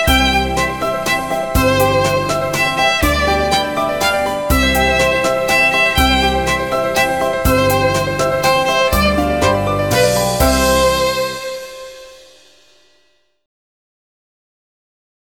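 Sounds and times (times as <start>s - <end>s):
violin waltz melody: 0.0s - 12.4s.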